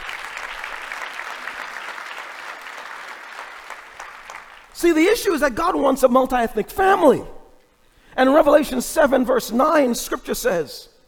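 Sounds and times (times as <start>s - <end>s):
audience applause: 0.0s - 4.7s
speech: 4.8s - 7.4s, 8.2s - 10.9s.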